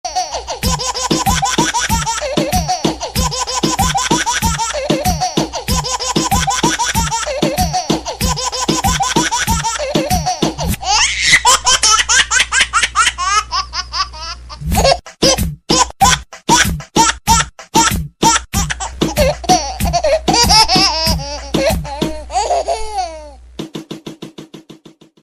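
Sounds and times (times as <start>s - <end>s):
baby laughing: 0.1s - 23.4s.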